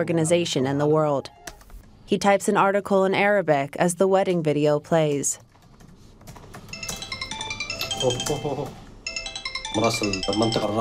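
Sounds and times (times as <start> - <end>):
speech: 0.0 - 1.4, 2.1 - 5.5, 8.0 - 8.8, 9.7 - 10.7
mobile phone ringtone with repeating electronic melody: 6.7 - 10.7.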